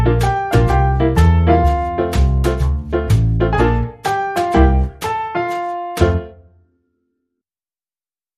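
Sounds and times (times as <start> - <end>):
double bass: 0.0 - 5.0, 6.0 - 6.3
piano: 0.0 - 6.7.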